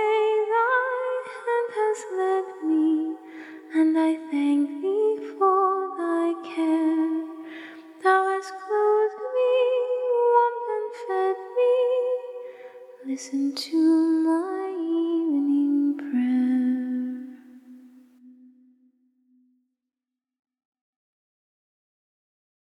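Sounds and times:
a cappella hymn singing: 0:00.0 - 0:17.4.

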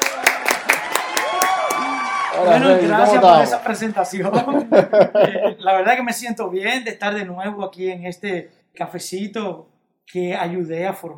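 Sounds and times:
audience cheering: 0:00.0 - 0:04.4
audience applause: 0:00.0 - 0:05.2
speech: 0:02.4 - 0:11.1
laughter: 0:04.1 - 0:05.8.

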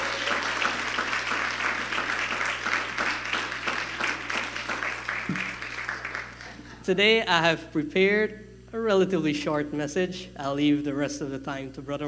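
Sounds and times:
round of applause: 0:00.0 - 0:06.7
speech: 0:06.9 - 0:12.0.

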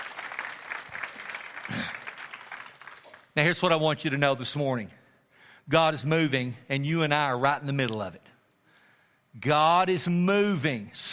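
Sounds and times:
audience clapping: 0:00.0 - 0:03.7
speech: 0:03.4 - 0:05.0, 0:05.7 - 0:08.2, 0:09.4 - 0:11.1.

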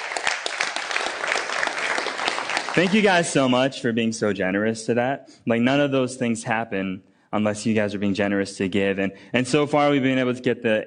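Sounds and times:
crowd applauding: 0:00.0 - 0:03.6
speech: 0:02.8 - 0:10.8.

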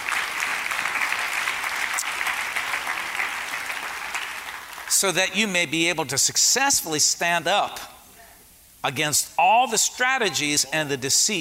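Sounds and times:
audience hand clapping: 0:00.0 - 0:05.0
speech: 0:05.0 - 0:07.9, 0:08.8 - 0:11.3.

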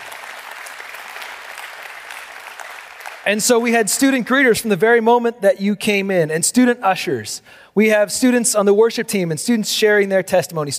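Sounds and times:
audience applause: 0:00.0 - 0:03.7
speech: 0:03.2 - 0:10.7.

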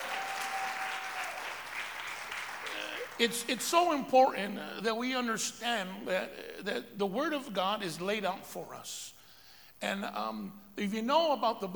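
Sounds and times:
audience applause: 0:00.0 - 0:03.6
speech: 0:03.2 - 0:09.2, 0:09.8 - 0:11.7.

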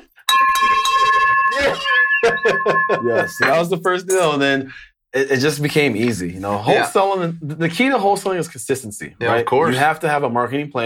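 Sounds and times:
victory bell ringing: 0:00.2 - 0:04.4
speech: 0:01.6 - 0:10.8.

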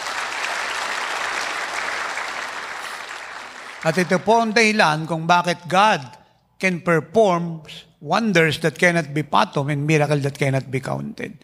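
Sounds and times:
congregation applause at a church worship service: 0:00.0 - 0:05.1
speech: 0:03.8 - 0:11.4.

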